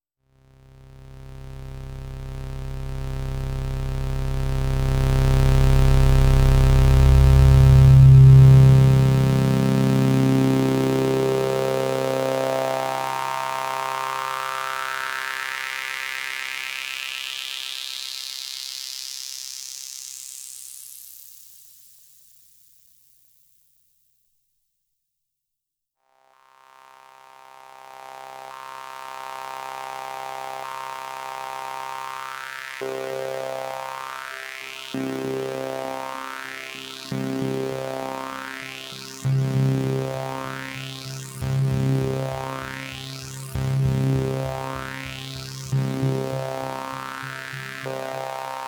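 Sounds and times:
Doepfer A-121 and A-138j modular synthesizer: 2.2s - 15.6s, 29.8s - 48.6s.

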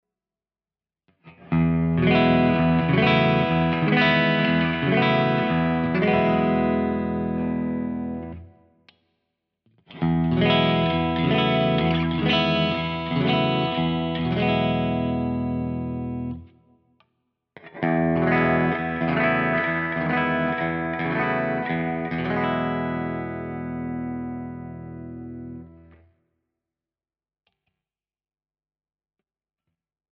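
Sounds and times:
Jazzmaster clean bright electric guitar chords: 1.4s - 8.6s, 9.9s - 16.5s, 17.6s - 26.0s.

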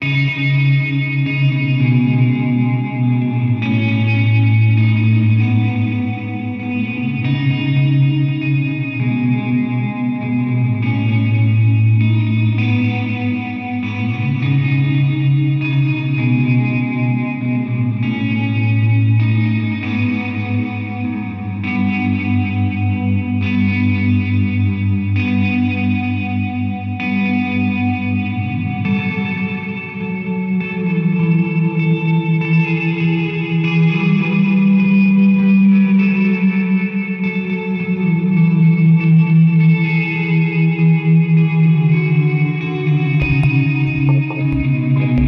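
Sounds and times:
guitar through delay reverb pedal: 0.0s - 45.2s.

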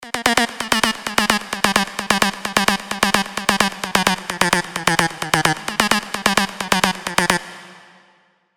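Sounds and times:
electronic dance music: 0.0s - 8.1s.

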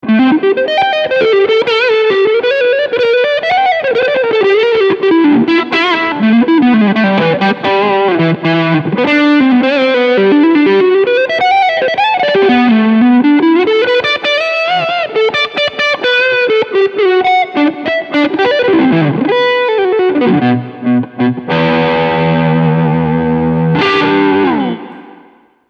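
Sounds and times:
Leadsound low gain guitar tone in MIT Hall: 0.0s - 25.6s.

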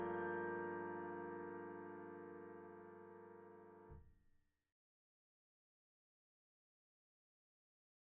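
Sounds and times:
Artis SE piano: 0.0s - 4.0s.

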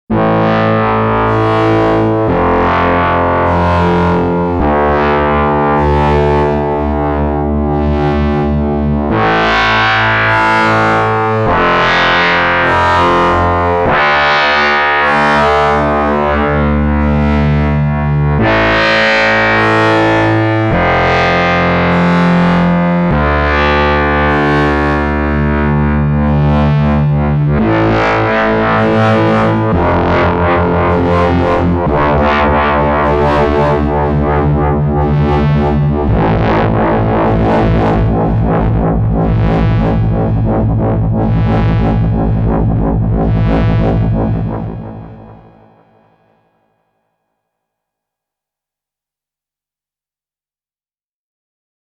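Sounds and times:
Sequential Pro 2 synthesizer FM wobble: 0.1s - 46.2s.

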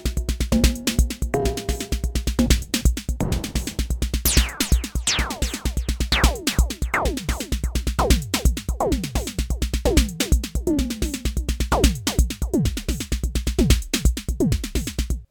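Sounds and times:
TR-606 drum machine: 0.0s - 15.2s
Micromoog analog synthesizer: 4.2s - 12.2s.

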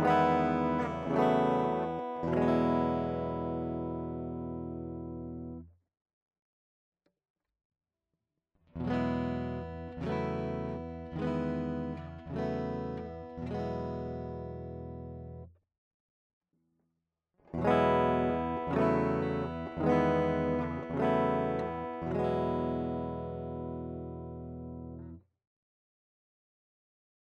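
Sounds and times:
ESP LTD TE 1000 DI guitar: 0.0s - 5.7s, 8.7s - 15.5s, 17.4s - 25.2s.

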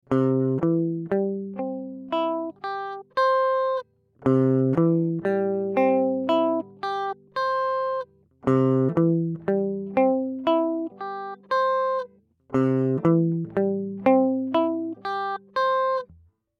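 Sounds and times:
guitar arpeggio: 0.1s - 16.2s.

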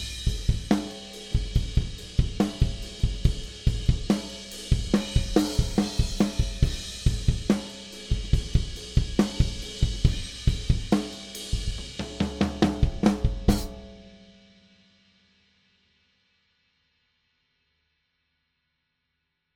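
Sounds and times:
open hi-hat: 0.0s - 14.0s.

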